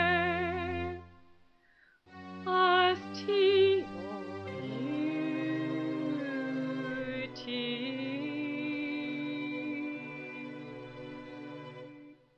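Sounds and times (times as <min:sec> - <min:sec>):
accompanied lullaby: 0:02.5 - 0:10.7.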